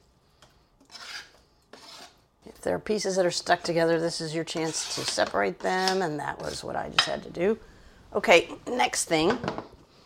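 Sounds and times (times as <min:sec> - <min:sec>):
knife or spatula scraping chopped chicken off cutting board: 0:00.8 - 0:02.2, 0:04.5 - 0:06.7
speech: 0:02.6 - 0:09.7.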